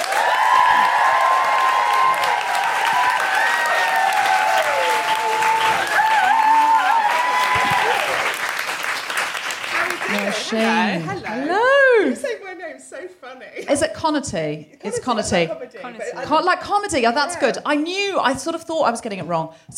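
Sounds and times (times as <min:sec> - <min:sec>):
woohoo cheers: 0:00.0 - 0:08.4
live audience applause welcoming a comedian: 0:00.0 - 0:11.3
speech: 0:10.5 - 0:11.5, 0:13.3 - 0:19.7.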